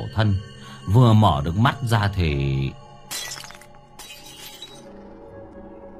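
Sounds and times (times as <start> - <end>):
speech: 0.1 - 3.4
dog food bowl smashing and breaking: 3.1 - 5.0
clinks of scattered dog bowl fragments: 3.1 - 5.1.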